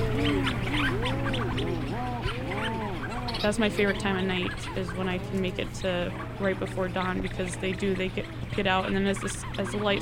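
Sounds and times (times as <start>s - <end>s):
rhinoceros auklets mooing in a seabird colony: 0.0s - 9.9s
steady low hum: 0.0s - 9.9s
speech: 3.4s - 9.9s.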